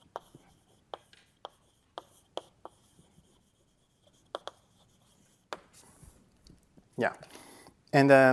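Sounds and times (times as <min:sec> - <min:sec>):
chalk or marker strokes on a board during a physics lecture: 0:00.0 - 0:06.2
faint room hiss: 0:00.0 - 0:08.3
speech: 0:07.0 - 0:07.3, 0:07.9 - 0:08.3.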